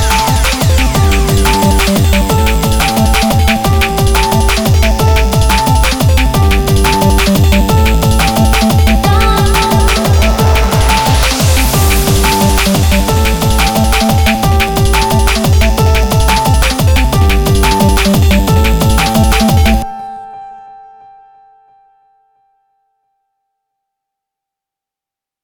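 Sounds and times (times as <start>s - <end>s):
drum and bass music: 0.0s - 19.9s.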